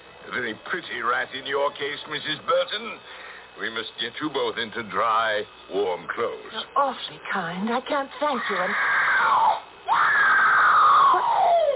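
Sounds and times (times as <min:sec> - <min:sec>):
speech: 0:00.3 - 0:10.0
distant scream: 0:08.3 - 0:11.7.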